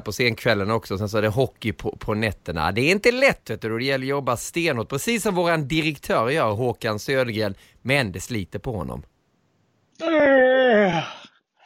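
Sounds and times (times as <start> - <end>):
speech: 0.0 - 9.1, 10.0 - 11.2
person yawning: 10.0 - 11.4.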